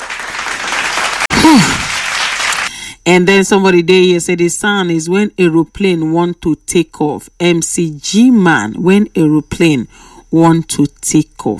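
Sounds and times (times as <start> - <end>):
crowd clapping: 0.0 - 2.7
speech: 1.4 - 1.9, 3.1 - 11.5.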